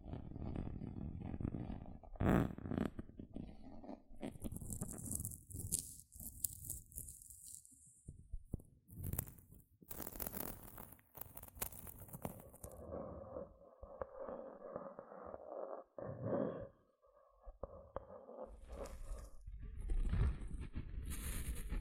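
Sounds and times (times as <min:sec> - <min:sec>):
gentle scratching: 0:00.6 - 0:07.9, 0:08.9 - 0:21.8.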